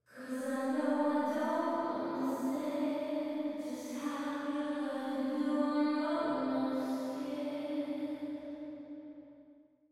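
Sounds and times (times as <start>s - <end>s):
wet upfront solo lead vocals with unnatural reverb: 0.1s - 8.8s.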